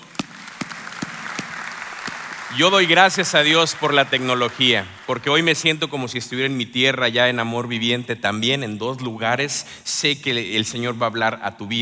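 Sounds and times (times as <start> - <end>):
audience applause: 0.0 - 5.7
speech: 2.5 - 11.7.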